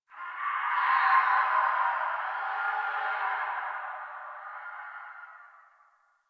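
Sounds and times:
distant infested screams in winter: 0.1 - 6.0.

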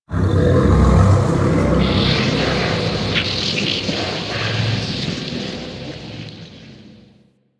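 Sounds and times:
disturbance ambience: 0.1 - 7.2.

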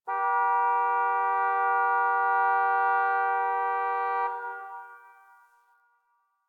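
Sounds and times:
distant car horn: 0.0 - 5.8.

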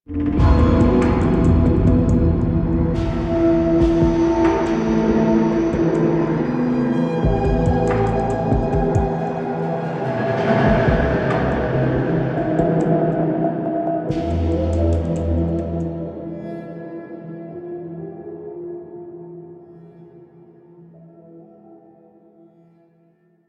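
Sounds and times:
hub intro music cue: 0.1 - 16.4.

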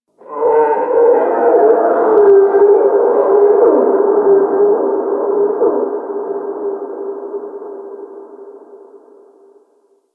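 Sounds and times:
distant ice creature cry: 0.2 - 6.2.

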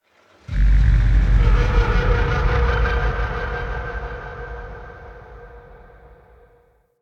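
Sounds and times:
large call ambience: 0.1 - 6.7.

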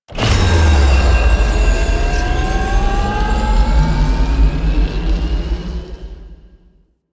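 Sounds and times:
power up sound effect: 0.1 - 5.8.

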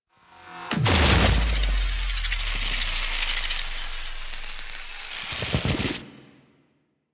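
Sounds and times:
electronic interference: 0.9 - 6.1.

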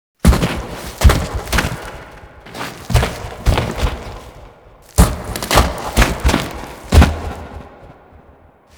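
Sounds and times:
foley sounds: 0.2 - 7.6.

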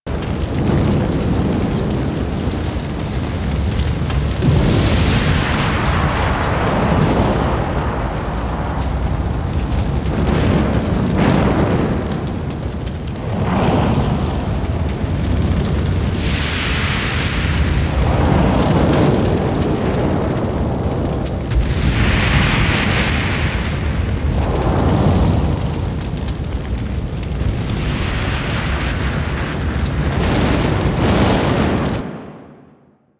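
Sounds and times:
fire blaze in a destroyed throne room: 0.0 - 33.0.

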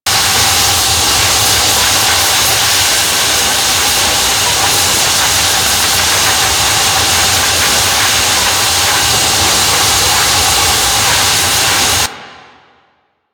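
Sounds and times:
fortress gas trap: 0.1 - 12.1.

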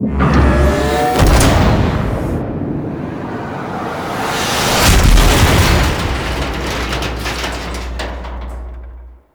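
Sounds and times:
pod charge fire impact: 0.0 - 9.3.

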